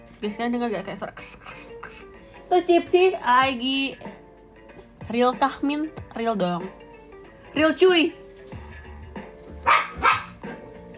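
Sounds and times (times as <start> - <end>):
speech: 0.2 - 1.8, 2.5 - 4.2, 5.1 - 6.8, 7.6 - 8.2
dog barking: 9.6 - 10.5.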